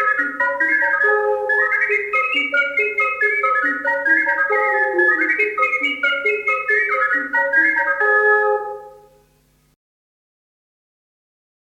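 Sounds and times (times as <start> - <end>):
five multitracked ocarinas playing Emilian folk dance music: 0.0 - 9.3.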